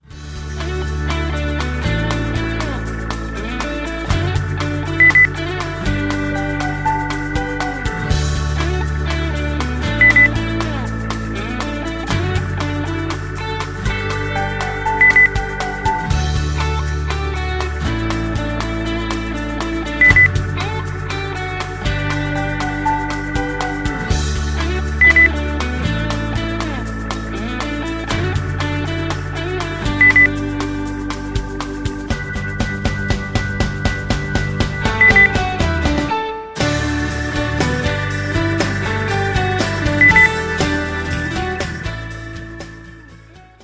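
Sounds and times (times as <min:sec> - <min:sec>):
rock music: 0:00.0 - 0:43.6
beep: 0:05.0 - 0:05.3, 0:10.0 - 0:10.3, 0:15.0 - 0:15.4, 0:20.0 - 0:20.3, 0:25.0 - 0:25.3, 0:30.0 - 0:30.3, 0:35.0 - 0:35.4.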